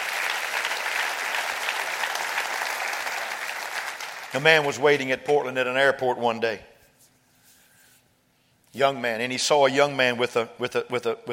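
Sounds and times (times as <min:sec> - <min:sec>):
audience clapping hands: 0:00.0 - 0:05.1
speech: 0:04.3 - 0:06.7, 0:08.7 - 0:11.3.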